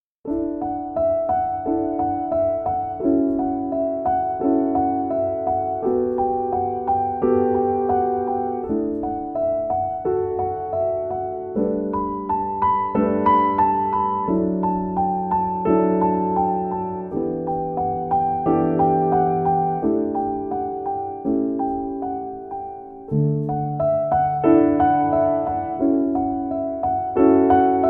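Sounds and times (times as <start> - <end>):
calm nature song: 0.2 - 27.8.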